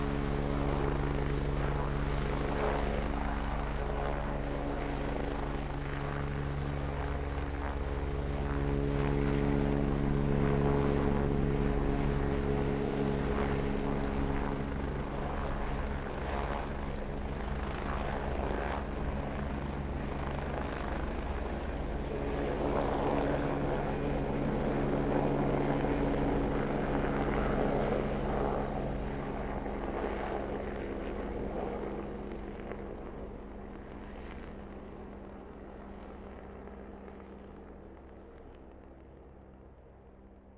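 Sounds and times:
Agusta A109 helicopter idling, taking off and flying away: 0:00.0 - 0:40.5.

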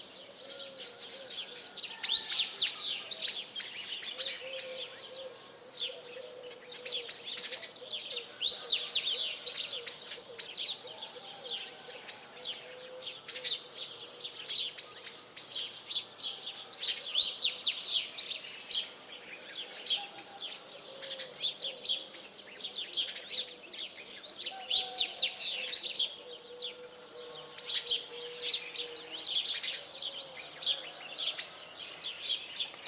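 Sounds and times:
birds at a village palm farm in the early morning: 0:00.0 - 0:32.8.

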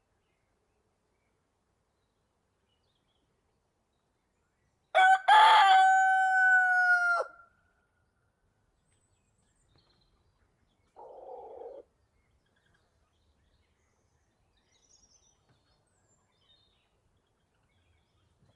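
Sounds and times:
rooster crowing in the countryside during the day: 0:05.0 - 0:07.4.

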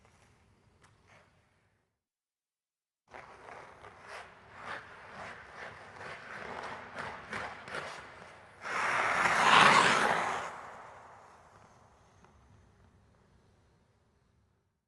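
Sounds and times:
ice hockey skate turning in and turning wide: 0:03.1 - 0:12.7.

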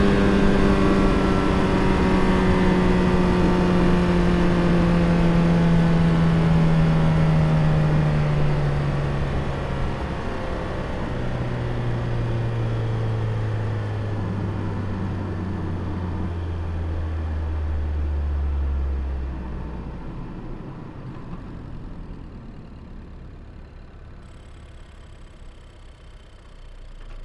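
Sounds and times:
Ford Focus RS engine heard onboard while driving: 0:00.0 - 0:27.2
Ford Focus RS engine switching off: 0:20.6 - 0:27.2.

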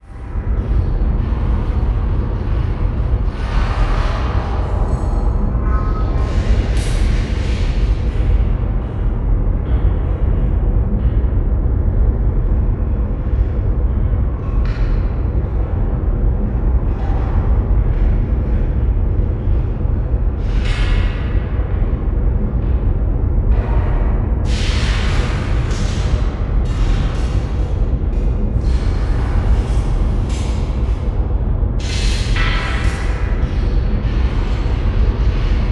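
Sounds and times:
ambience: 0:00.0 - 0:35.7.

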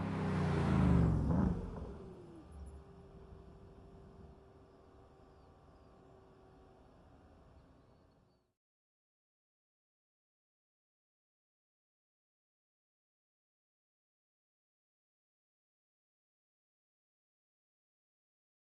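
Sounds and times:
Mercedes-AMG GT R engine starting: 0:00.0 - 0:03.0.

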